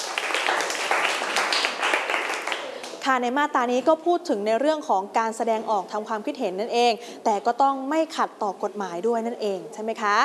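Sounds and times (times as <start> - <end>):
students in a classroom clapping for a classmate: 0.0 - 3.0
speech: 3.1 - 10.2.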